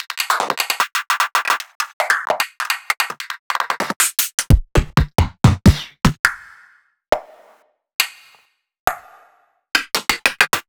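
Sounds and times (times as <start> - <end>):
hybrid beatbox drums: 0.0 - 6.4, 9.8 - 10.6.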